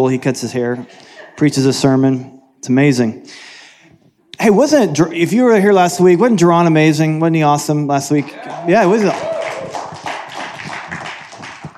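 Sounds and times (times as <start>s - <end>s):
speech: 0.0s - 3.5s, 4.4s - 9.3s
audience clapping: 8.1s - 11.7s.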